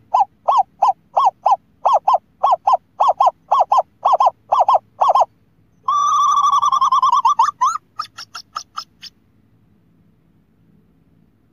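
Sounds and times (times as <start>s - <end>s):
scops owl hooting: 0.0s - 9.1s.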